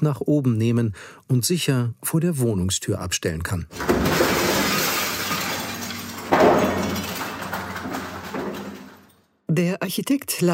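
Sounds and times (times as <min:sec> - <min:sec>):
speech: 0:00.0 - 0:04.4, 0:09.6 - 0:10.5
window pane being smashed: 0:03.7 - 0:09.2
trailing rattling glass shards: 0:03.8 - 0:09.2.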